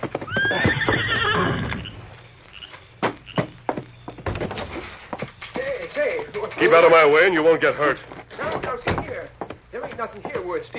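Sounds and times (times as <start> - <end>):
horse hooves clip-clopping on ground: 0.0 - 10.7
horse whinnying: 0.2 - 2.0
speech: 6.6 - 8.2, 10.0 - 10.7.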